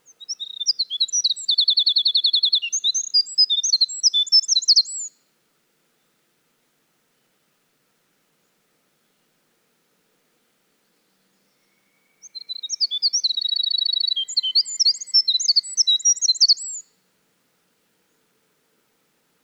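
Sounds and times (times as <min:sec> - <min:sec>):
Winter wren in full song: 0:00.1 - 0:05.1, 0:11.2 - 0:16.8.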